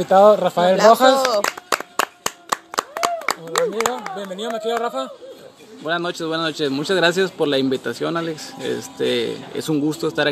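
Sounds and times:
speech: 0.0s - 1.6s, 3.7s - 10.2s
hands clapping: 1.0s - 5.0s.

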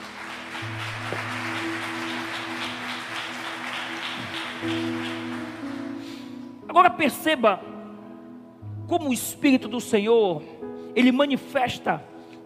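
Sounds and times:
audience applauding: 0.0s - 6.2s
speech: 4.6s - 5.0s, 6.8s - 7.7s, 8.9s - 12.1s.

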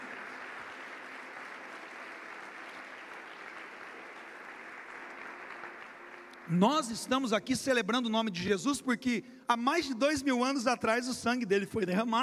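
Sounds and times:
audience applause: 0.0s - 7.4s
speech: 6.5s - 12.2s.

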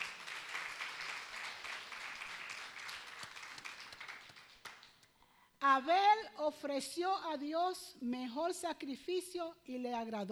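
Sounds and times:
audience applause: 0.0s - 5.1s
speech: 5.6s - 10.3s.

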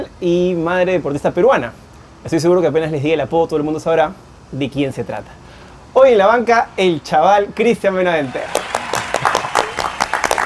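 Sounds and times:
speech: 0.1s - 5.4s, 6.0s - 9.4s
audience applause: 8.2s - 10.4s.

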